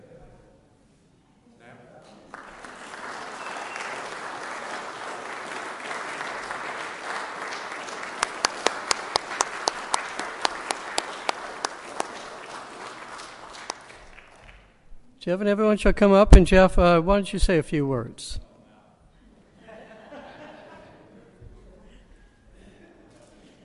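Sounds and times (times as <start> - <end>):
audience applause: 2.3 - 14.7
sharp individual claps: 2.4 - 14.8
speech: 15.2 - 18.5
laughter: 19.6 - 21.8.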